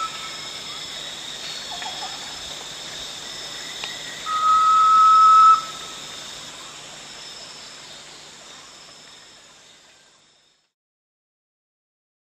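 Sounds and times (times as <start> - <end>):
Erythropitta arquata calling: 4.2 - 5.9.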